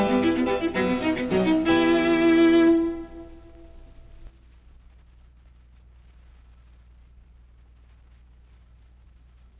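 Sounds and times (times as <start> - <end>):
cello sonata: 0.0 - 4.3.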